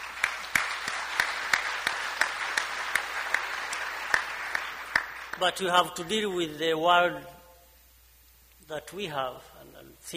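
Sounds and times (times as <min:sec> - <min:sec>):
audience applause: 0:00.0 - 0:05.5
speech: 0:05.4 - 0:07.4, 0:08.7 - 0:10.1.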